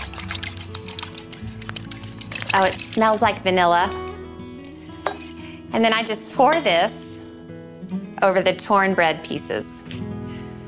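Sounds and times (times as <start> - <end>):
whisking ingredients in a bowl: 0.0 - 3.2
speech: 2.5 - 4.0, 5.7 - 7.0, 8.2 - 9.8.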